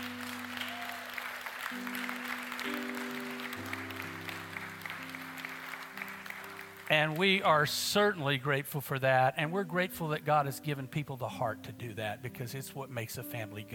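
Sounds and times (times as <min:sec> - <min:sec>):
audience applause: 0:00.0 - 0:07.6
speech: 0:06.9 - 0:13.7.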